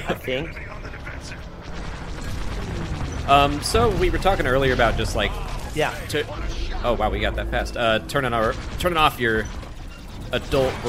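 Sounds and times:
speech: 0:00.1 - 0:01.4, 0:03.2 - 0:09.6, 0:10.3 - 0:10.8
proton torpedo launch whoosh in a Star Wars flight video game: 0:01.6 - 0:07.7.

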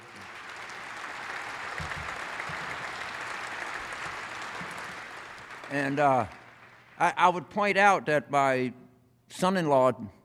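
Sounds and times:
audience applause: 0:00.0 - 0:07.2
speech: 0:05.7 - 0:06.4, 0:07.0 - 0:10.2.

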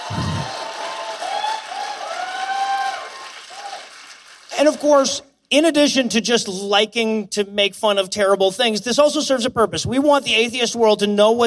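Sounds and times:
high whistles and whoops: 0:00.0 - 0:03.9
crowd applauding: 0:00.0 - 0:05.0
speech: 0:04.6 - 0:11.4.

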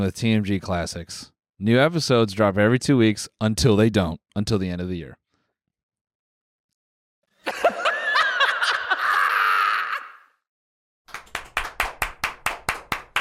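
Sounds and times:
speech: 0:00.0 - 0:05.2
laughter: 0:07.4 - 0:10.2
live studio audience clapping: 0:11.1 - 0:13.2.

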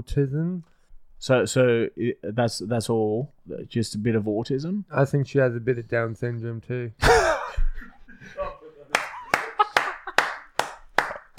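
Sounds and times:
speech: 0:00.0 - 0:07.6
laughter: 0:07.0 - 0:10.4
clapping: 0:08.9 - 0:11.3.

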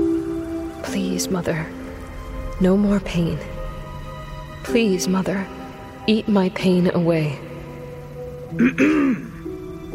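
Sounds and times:
faint hiss: 0:00.0 - 0:09.9
speech: 0:00.8 - 0:01.8, 0:02.6 - 0:03.5, 0:04.6 - 0:07.5, 0:08.5 - 0:09.3
person clearing throat: 0:08.5 - 0:09.4.

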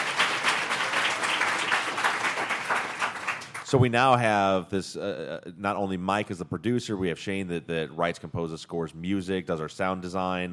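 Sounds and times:
audience applause in a live crime convention hall: 0:00.0 - 0:03.7
speech: 0:03.7 - 0:10.5.

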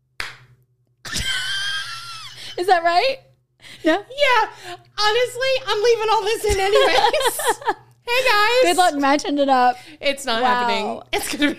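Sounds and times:
single hand clap for audio sync: 0:00.2 - 0:00.5
speech: 0:02.6 - 0:11.5.

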